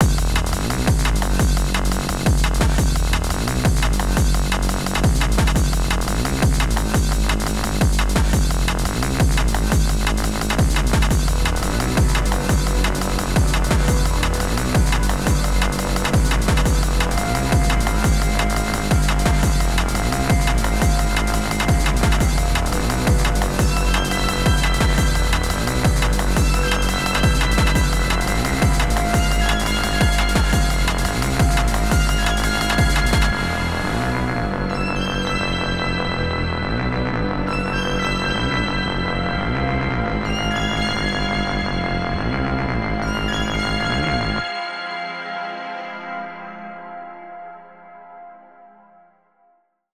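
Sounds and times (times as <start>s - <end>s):
drum and bass music: 0.0s - 44.4s.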